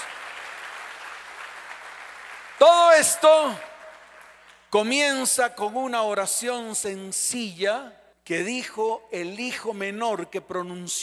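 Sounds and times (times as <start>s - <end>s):
audience applause: 0.0s - 4.5s
speech: 2.6s - 3.7s, 4.7s - 11.0s.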